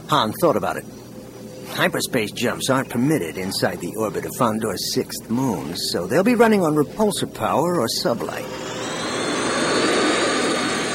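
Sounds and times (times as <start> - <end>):
speech: 0.1 - 1.0, 1.7 - 8.9
spaceship thrusters roaring: 8.2 - 10.9.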